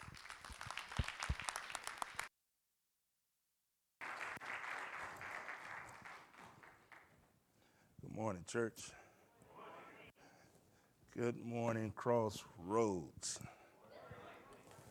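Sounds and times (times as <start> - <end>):
audience applauding: 0.0 - 2.3, 4.0 - 7.3
speech: 8.1 - 9.0, 11.2 - 13.6.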